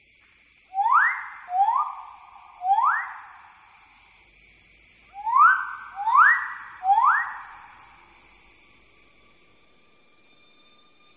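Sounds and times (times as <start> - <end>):
faint hum: 0.5 - 11.1
bird-of-paradise upward-sweeping whistles: 0.7 - 3.4, 5.2 - 7.9.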